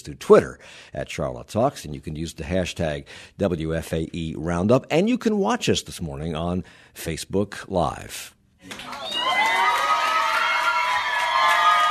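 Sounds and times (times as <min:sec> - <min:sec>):
speech: 0:00.0 - 0:09.2
crowd cheering at campaign headquarters: 0:08.6 - 0:11.8
high shouts and whoops: 0:08.7 - 0:11.8.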